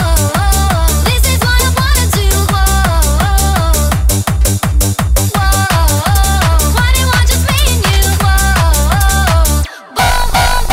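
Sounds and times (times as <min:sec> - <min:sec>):
hardtekk pop music: 0:00.0 - 0:10.7.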